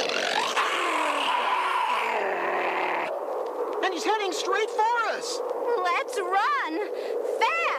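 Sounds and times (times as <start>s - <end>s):
bear growling: 0.0s - 3.2s
speech: 4.0s - 7.6s.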